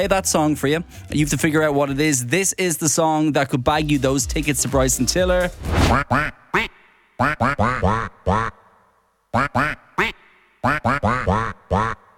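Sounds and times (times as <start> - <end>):
speech: 0.0 - 8.6, 9.3 - 12.0
person imitating duck quacks into microphone: 5.9 - 8.7, 9.3 - 12.1.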